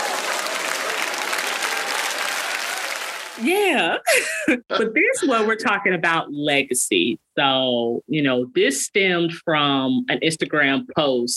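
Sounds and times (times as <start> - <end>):
crowd applause sound effect: 0.0 - 3.7
speech: 3.4 - 11.3.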